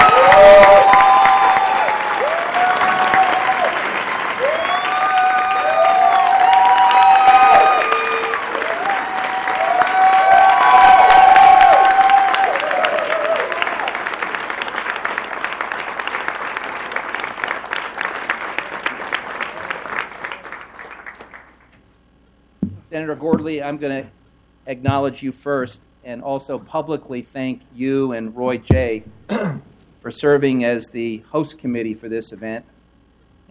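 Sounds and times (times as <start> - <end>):
applause for a proclamation: 0.0 - 21.7
speech: 23.1 - 32.7.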